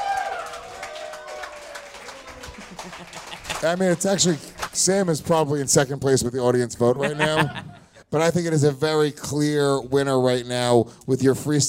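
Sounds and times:
audience applause for a stand-up comedian at a talent contest: 0.0 - 4.8
laughter: 2.2 - 4.5, 6.8 - 8.0
speech: 2.8 - 11.6.

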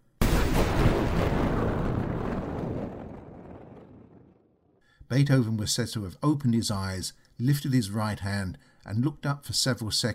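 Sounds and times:
clap of thunder: 0.2 - 4.7
speech: 5.1 - 10.1.

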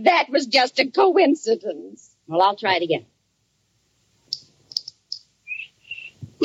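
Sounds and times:
speech: 0.0 - 3.1
cricket chirping: 4.3 - 6.2.

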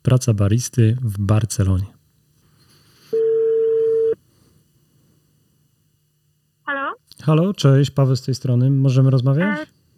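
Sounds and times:
faint hum: 0.0 - 9.9
speech: 0.1 - 2.0, 7.2 - 9.8
telephone ringing tone: 3.2 - 4.2.

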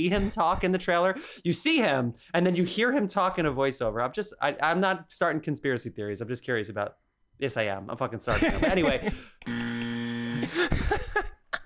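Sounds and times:
speech: 0.0 - 9.7, 10.4 - 11.4
laughter: 8.3 - 9.2
harsh flat electronic buzzer: 9.4 - 10.7.

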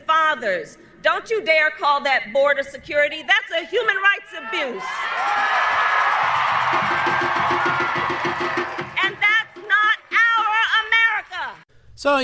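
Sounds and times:
speech: 0.3 - 5.4, 12.0 - 12.2
crowd cheering: 4.4 - 11.6.

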